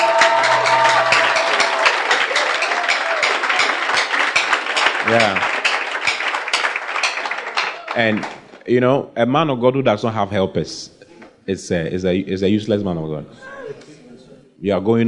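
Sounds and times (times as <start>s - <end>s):
audience applause: 0.0s - 8.6s
speech: 5.1s - 5.5s, 8.0s - 13.8s, 14.6s - 15.0s.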